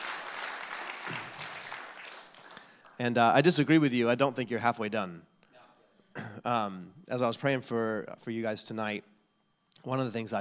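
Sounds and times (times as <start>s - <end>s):
audience applause for the pastors: 0.0s - 3.0s
speech: 3.0s - 5.3s, 6.4s - 9.1s, 9.8s - 10.3s.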